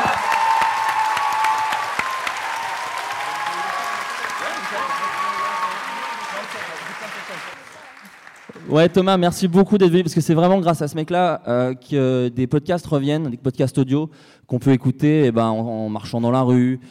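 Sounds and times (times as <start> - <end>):
audience applause: 0.0 - 9.1
speech: 8.7 - 16.8.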